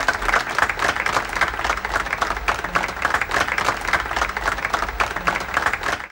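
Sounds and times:
applause: 0:00.0 - 0:06.1.

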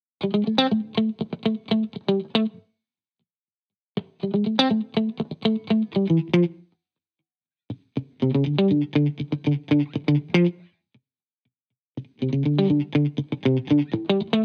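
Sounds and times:
70s style guitars in A minor at 120 BPM: 0:00.2 - 0:02.6, 0:04.0 - 0:06.6, 0:07.7 - 0:10.8, 0:12.0 - 0:14.4.

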